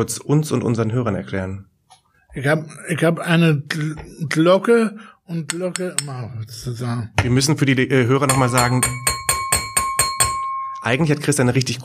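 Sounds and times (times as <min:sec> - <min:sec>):
speech: 0:00.0 - 0:01.7, 0:02.3 - 0:09.1, 0:10.8 - 0:11.8
spoon striking a champagne glass: 0:08.3 - 0:11.0.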